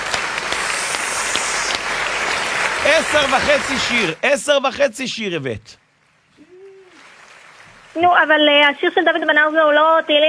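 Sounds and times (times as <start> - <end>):
group applause: 0.0 - 4.2, 6.7 - 8.0
speech: 2.9 - 5.8, 8.0 - 10.2.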